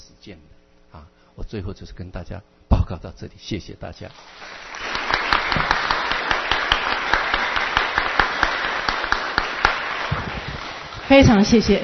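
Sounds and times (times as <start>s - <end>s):
speech: 0.2s - 4.8s, 11.1s - 11.8s
audience applause: 4.2s - 11.8s.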